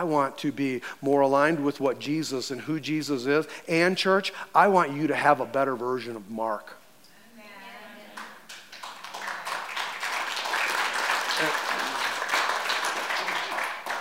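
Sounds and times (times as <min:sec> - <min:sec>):
speech: 0:00.0 - 0:06.8
audience applause: 0:08.1 - 0:14.0.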